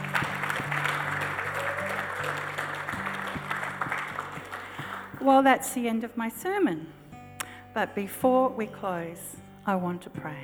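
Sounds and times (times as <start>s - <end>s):
church congregation clapping: 0.0s - 5.2s
speech: 5.2s - 7.0s, 7.8s - 10.4s.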